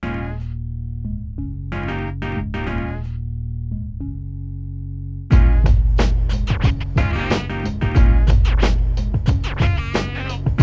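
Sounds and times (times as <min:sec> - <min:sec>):
hip hop beat: 0:05.3 - 0:10.6.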